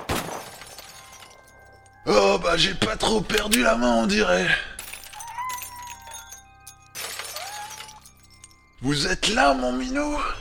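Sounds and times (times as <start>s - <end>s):
street lamp glass shattering: 0.0s - 2.1s, 4.8s - 8.8s
speech: 2.0s - 4.7s, 8.8s - 10.3s.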